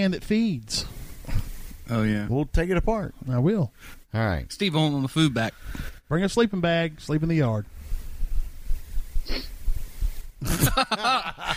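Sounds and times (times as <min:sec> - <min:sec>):
speech: 0:00.0 - 0:07.8, 0:09.3 - 0:09.5, 0:10.4 - 0:11.5
person sniffing: 0:00.9 - 0:01.7, 0:08.9 - 0:10.3
laughter: 0:10.4 - 0:11.5.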